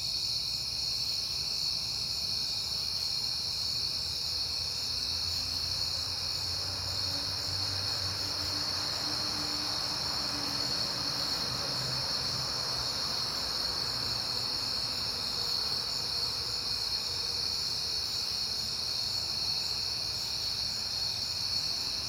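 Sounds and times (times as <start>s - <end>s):
crickets chirping: 0.0s - 22.0s
passing car: 4.8s - 17.6s.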